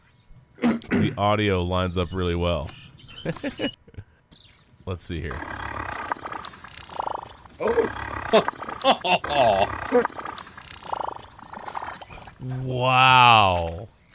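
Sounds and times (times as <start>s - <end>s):
loud fart: 0.6s - 1.2s, 5.3s - 12.1s
speech: 0.9s - 3.8s, 4.9s - 5.6s, 7.6s - 10.2s, 12.4s - 13.9s
laughter: 3.2s - 4.1s, 7.6s - 9.7s.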